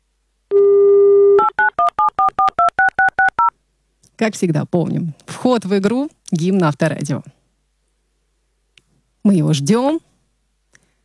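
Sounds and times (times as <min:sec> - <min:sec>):
phone dial tone: 0:00.5 - 0:03.5
speech: 0:04.2 - 0:07.4, 0:09.2 - 0:10.1.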